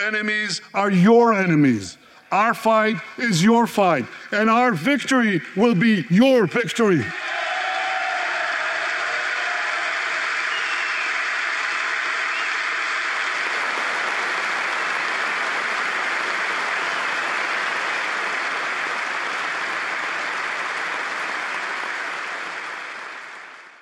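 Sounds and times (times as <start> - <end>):
speech: 0.0 - 7.3
extended audience applause after speech: 6.8 - 23.7.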